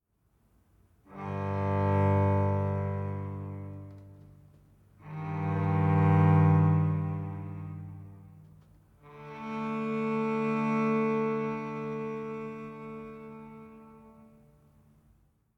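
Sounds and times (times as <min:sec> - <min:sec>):
savannah-themed music: 0:01.0 - 0:15.0.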